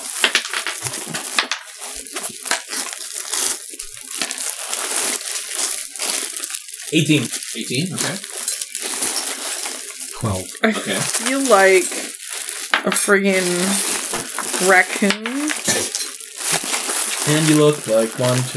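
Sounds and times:
dice rattling onto a table during a Dungeons & Dragons game: 0:00.1 - 0:01.8
speech: 0:06.9 - 0:08.3, 0:10.2 - 0:12.0, 0:12.8 - 0:15.8, 0:17.2 - 0:18.5.

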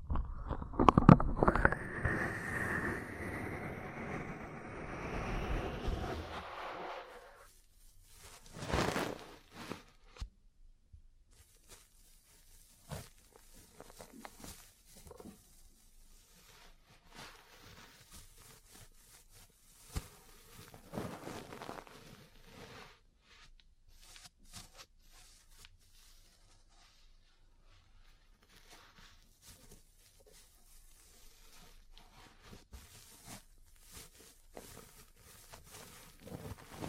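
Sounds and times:
ear massage rubbing: 0:00.2 - 0:10.1, 0:11.4 - 0:36.8
scratchy scraping: 0:00.3 - 0:07.5, 0:08.0 - 0:10.0, 0:12.7 - 0:22.9, 0:28.5 - 0:36.8.

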